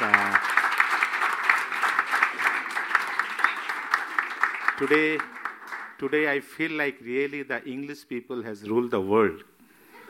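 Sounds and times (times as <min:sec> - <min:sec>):
audience at a gathering of young people clapping: 0:00.0 - 0:06.4
speech: 0:04.8 - 0:05.4, 0:06.0 - 0:09.5.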